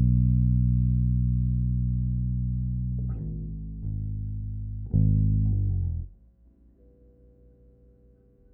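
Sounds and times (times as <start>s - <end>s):
bass takes: 0.0s - 6.5s.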